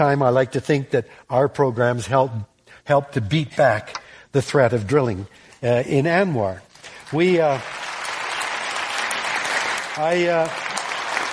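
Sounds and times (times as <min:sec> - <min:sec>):
speech: 0:00.0 - 0:07.8, 0:10.0 - 0:10.6
audience clapping: 0:06.8 - 0:11.3.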